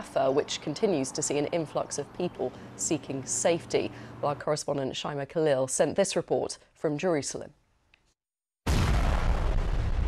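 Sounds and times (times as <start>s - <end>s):
speech: 0.0s - 7.6s
Israeli bombing of Hamas tunnels in northern Gaza: 8.6s - 10.0s.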